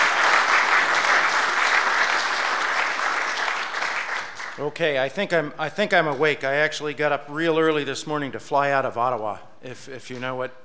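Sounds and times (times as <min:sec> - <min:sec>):
audience applause for a panel: 0:00.0 - 0:04.6
speech: 0:04.6 - 0:10.6.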